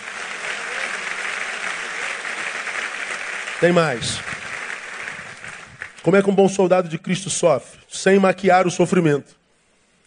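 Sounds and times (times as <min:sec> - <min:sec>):
audience applause: 0:00.0 - 0:06.2
speech: 0:03.6 - 0:04.4, 0:06.0 - 0:09.4.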